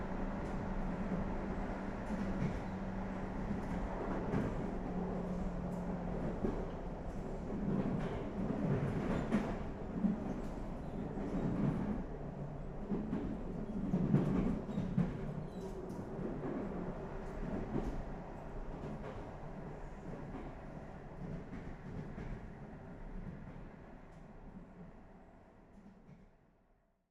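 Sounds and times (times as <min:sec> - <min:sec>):
train: 0:00.0 - 0:27.0.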